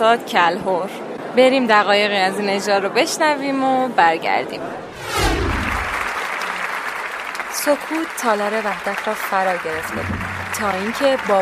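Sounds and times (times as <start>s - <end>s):
speech: 0.0s - 5.2s, 7.6s - 11.3s
audience applause in concert hall: 5.5s - 11.3s.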